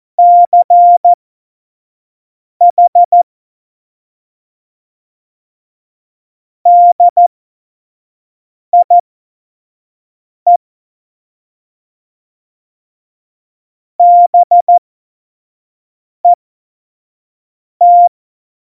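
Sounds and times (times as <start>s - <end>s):
CW Morse code beeps: 0.2s - 1.2s, 2.7s - 3.2s, 6.7s - 7.2s, 8.8s - 9.0s, 14.0s - 14.8s, 17.8s - 18.1s.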